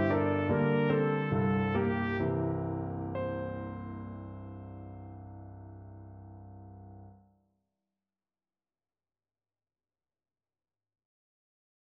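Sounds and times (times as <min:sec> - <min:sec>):
trumpet: 0:00.0 - 0:05.0.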